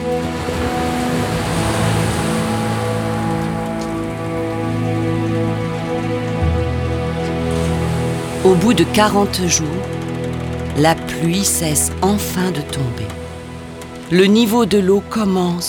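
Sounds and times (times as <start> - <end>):
low sustained musical drone: 0.0 - 15.6
ocean waves: 0.0 - 15.6
speech: 8.4 - 9.9, 10.8 - 13.1, 14.1 - 15.6.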